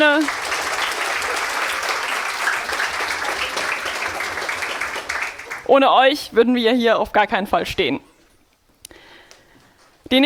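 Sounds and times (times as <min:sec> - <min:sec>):
speech: 0:00.0 - 0:00.5, 0:05.7 - 0:08.1
audience applause: 0:00.0 - 0:05.7.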